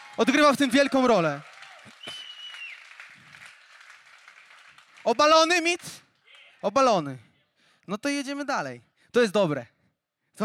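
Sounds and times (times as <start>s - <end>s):
audience applause: 0.0s - 6.6s
speech: 0.2s - 2.2s, 5.0s - 6.0s, 6.6s - 7.3s, 7.9s - 9.7s
whistle-like tone: 2.0s - 2.8s.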